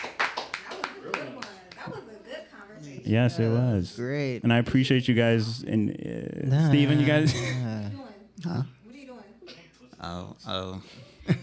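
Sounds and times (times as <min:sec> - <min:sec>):
people clapping: 0:00.0 - 0:02.1
speech: 0:03.0 - 0:07.8, 0:08.4 - 0:08.7, 0:10.0 - 0:11.4.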